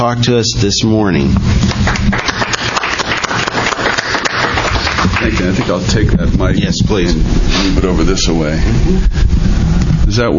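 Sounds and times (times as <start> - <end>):
speech: 0.0 - 2.4, 5.2 - 10.3
audience applause: 1.6 - 5.9.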